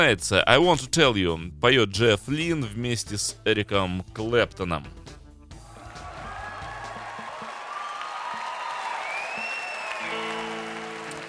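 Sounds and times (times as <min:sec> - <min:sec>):
speech: 0:00.0 - 0:05.0
large concert crowd applauding and cheering: 0:05.6 - 0:11.2
shrill whistles: 0:05.9 - 0:10.7.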